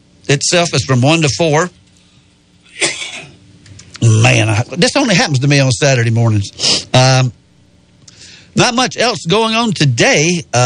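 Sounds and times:
speech: 0.2 - 1.8, 4.0 - 7.4, 8.6 - 10.6
harsh cough: 2.7 - 3.4.

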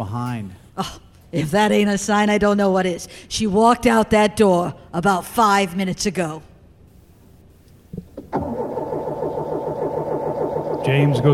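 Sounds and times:
speech: 0.0 - 6.5, 10.8 - 11.3
minivan engine cranking but failing to start: 8.3 - 11.3.

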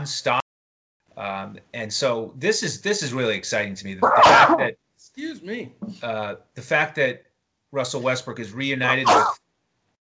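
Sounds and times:
speech: 0.0 - 0.4, 1.2 - 9.4
person sneezing: 9.0 - 9.4.

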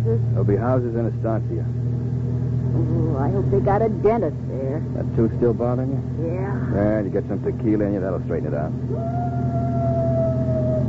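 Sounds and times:
constant low rumble: 0.0 - 10.8
speech: 0.1 - 1.9, 2.7 - 9.6
coyote howling: 8.8 - 10.8.

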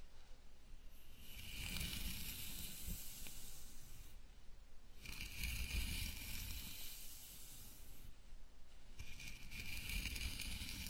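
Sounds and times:
fingers rubbing through hair during a scalp massage: 1.0 - 4.2, 5.0 - 8.1, 9.0 - 10.8.

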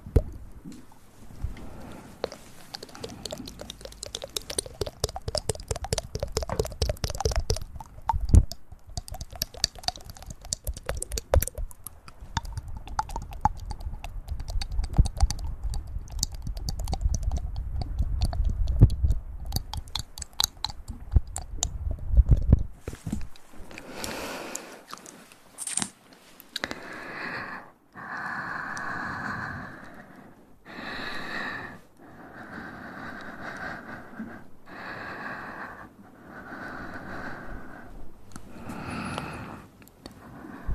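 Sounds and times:
soft breathy puffs: 1.4 - 21.6, 26.6 - 40.7
close ear triggers clicking and tapping: 2.2 - 23.4.

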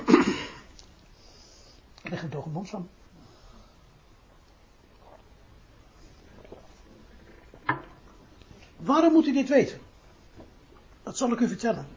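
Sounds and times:
speech: 2.1 - 3.1, 8.9 - 9.9, 11.2 - 11.9
sip of water: 4.9 - 7.6.

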